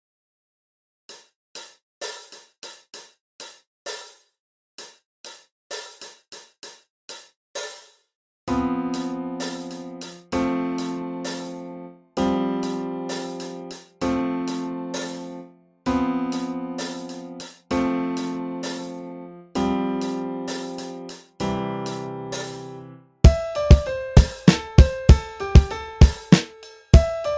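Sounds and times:
chord progression: 0:08.5 - 0:26.1.

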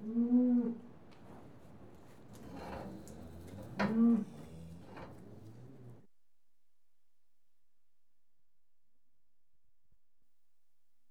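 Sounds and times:
cattle mooing: 0:02.7 - 0:06.0.

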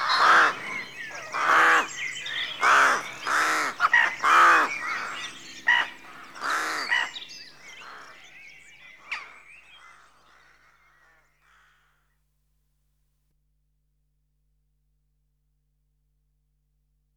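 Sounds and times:
rook cawing at a rookery at dawn in a rural setting: 0:00.0 - 0:08.2.

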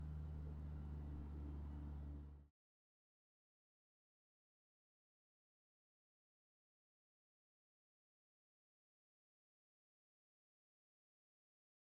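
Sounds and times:
tractor engine running at steady high RPMs heard from outside: 0:00.0 - 0:02.4.

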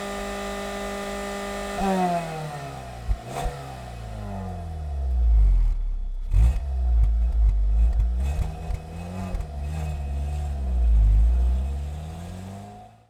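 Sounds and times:
2008 Skoda Octavia 1.6 engine start, idle and blip through catalytic converter exhaust: 0:00.0 - 0:13.0.

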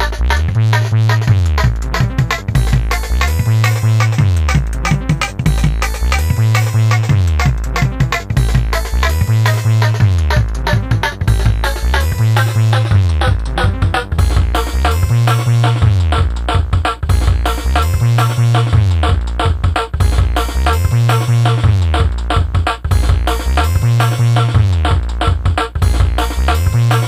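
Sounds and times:
drum and bass beat with stutter: 0:00.0 - 0:27.0.

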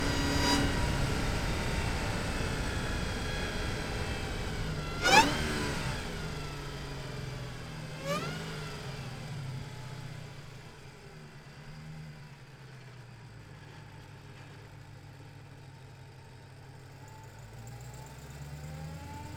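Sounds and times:
2015 Dodge Challenger Hellcat engine during medium drive: 0:00.0 - 0:12.6.

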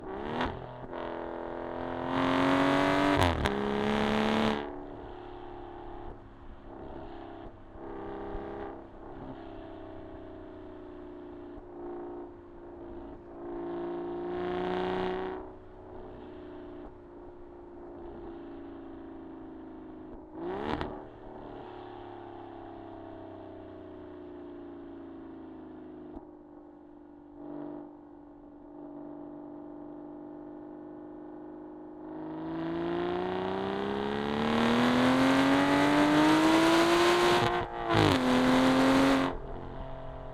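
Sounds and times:
Aston Martin Rapide S exhaust during medium drive and stops, left side: 0:00.0 - 0:29.4, 0:32.0 - 0:40.3.

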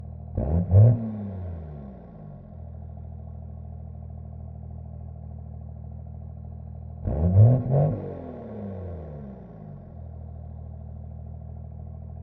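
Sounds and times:
1999 Dodge Ram 2500 diesel exhaust starting, idling, blipping and shutting off: 0:00.2 - 0:03.1, 0:06.7 - 0:12.1.

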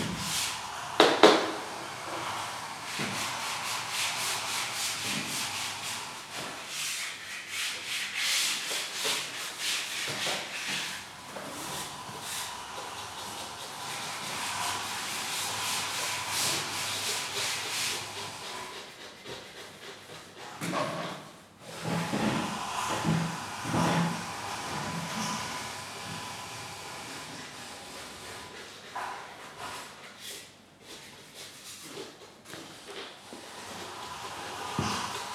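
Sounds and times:
indoor ambience in South Africa: 0:00.0 - 0:35.3.

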